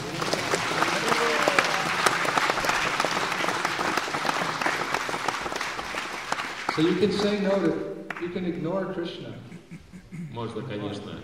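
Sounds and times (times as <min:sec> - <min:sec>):
audience round of applause: 0:00.0 - 0:08.3
speech: 0:06.8 - 0:09.5, 0:10.4 - 0:11.2
laughter: 0:09.4 - 0:11.1.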